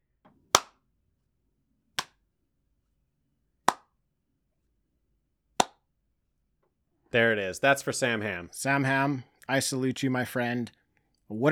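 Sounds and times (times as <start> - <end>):
slow clap: 0.5 - 0.8, 2.0 - 2.2, 3.7 - 3.9, 5.6 - 5.8
speech: 7.1 - 11.5.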